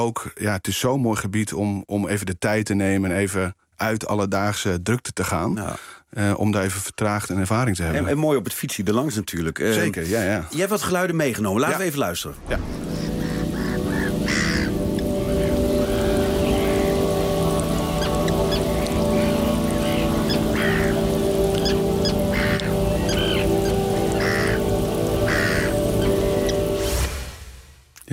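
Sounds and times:
speech: 0.0s - 13.1s
gulls calling at the harbour of Terschelling: 12.4s - 27.4s.

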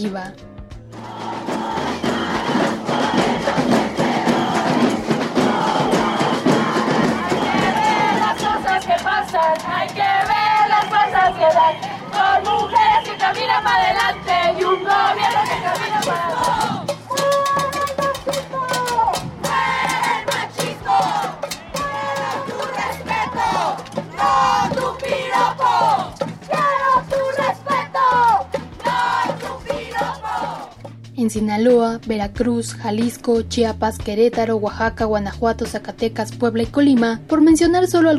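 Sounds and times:
speech: 0.0s - 2.1s, 31.2s - 38.1s
drum-like thumps: 0.6s - 31.5s
feminist protest march crowd chanting: 1.0s - 30.8s.

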